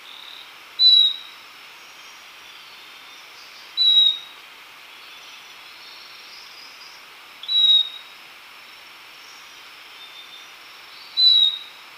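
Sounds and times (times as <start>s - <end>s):
Yellow-collared Chlorophonia calling in Ecuador: 0.1s - 1.4s, 3.8s - 4.4s, 7.4s - 8.1s, 11.1s - 11.8s.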